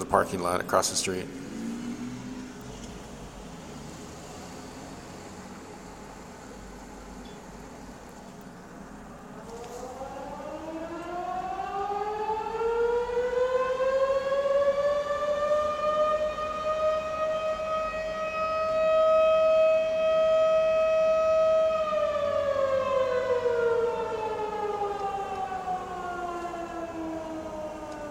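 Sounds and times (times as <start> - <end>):
speech: 0.1 - 1.5
noontime whistle siren wailing: 9.1 - 28.0.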